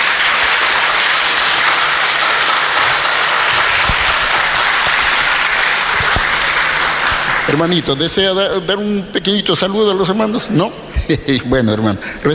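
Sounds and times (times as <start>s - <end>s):
audience applause: 0.0s - 9.0s
speech: 7.5s - 12.3s.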